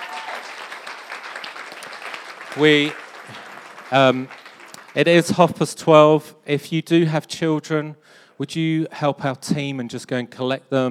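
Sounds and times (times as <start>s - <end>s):
audience applause: 0.0s - 5.2s
speech: 2.6s - 4.4s, 5.0s - 10.9s.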